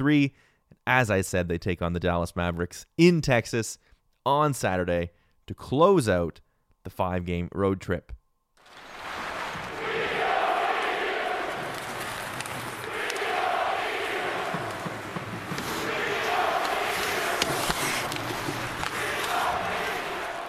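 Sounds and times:
speech: 0:00.0 - 0:08.2
New York Islanders hockey fans booing at Nassau Coliseum: 0:08.6 - 0:20.4.

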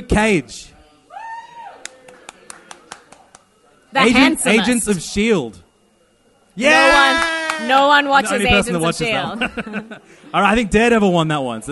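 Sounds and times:
speech: 0:00.1 - 0:00.8, 0:03.9 - 0:05.6, 0:06.6 - 0:11.7
people clapping: 0:01.8 - 0:03.6, 0:06.9 - 0:07.9
laughter: 0:09.0 - 0:10.5.

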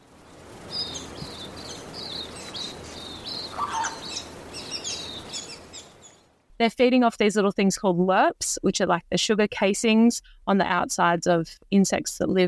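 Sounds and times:
soft background hiss: 0:00.0 - 0:12.4
Forty-spotted Pardalote high thin calls: 0:03.4 - 0:04.2
speech: 0:06.6 - 0:12.4.

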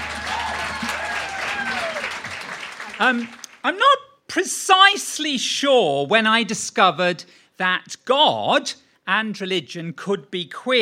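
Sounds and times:
live comedy audience applause at a Sydney venue: 0:00.0 - 0:03.6
speech: 0:03.0 - 0:10.8.

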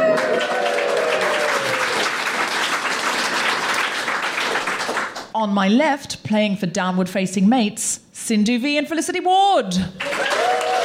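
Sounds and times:
audience applause welcoming comedians onto a comedy panel show: 0:00.0 - 0:05.3, 0:10.0 - 0:10.8
speech: 0:05.4 - 0:10.7.

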